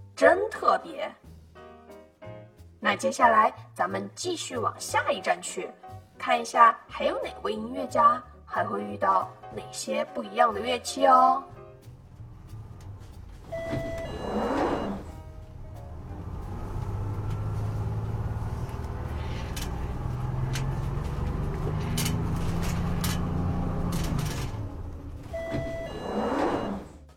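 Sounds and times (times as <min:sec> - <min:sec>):
speech: 0:00.2 - 0:01.3, 0:02.8 - 0:11.6
bus engine rumble while pulling into a stop: 0:11.5 - 0:27.1
short tone: 0:13.4 - 0:15.2, 0:25.2 - 0:27.0.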